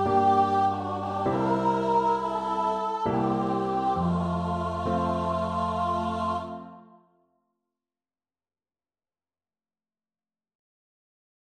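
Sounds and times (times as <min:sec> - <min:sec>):
vocal duet: 0:00.0 - 0:06.9.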